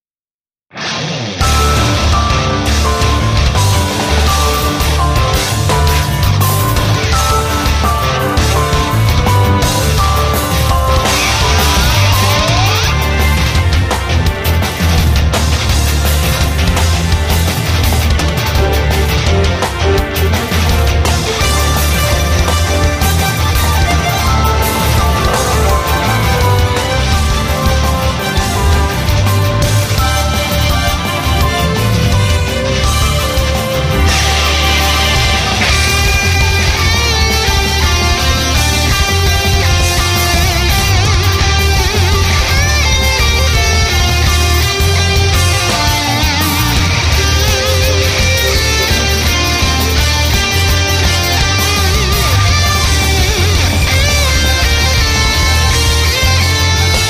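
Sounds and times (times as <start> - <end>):
battle background music: 1.4 - 57.0.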